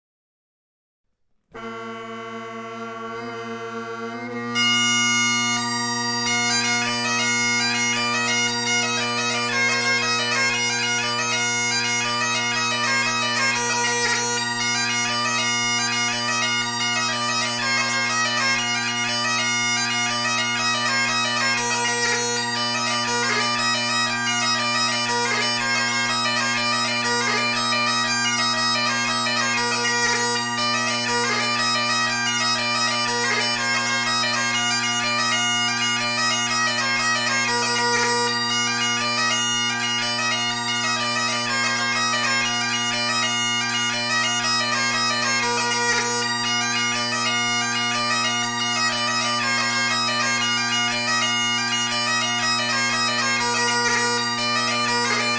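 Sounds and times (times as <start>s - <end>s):
jig tune: 1.6s - 55.3s.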